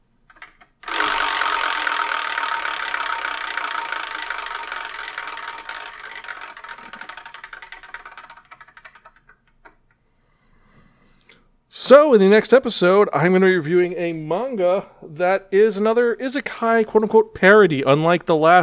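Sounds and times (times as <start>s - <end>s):
spinning selection wheel ticking used to pick a manga: 0.0s - 10.0s
speech: 11.9s - 18.6s.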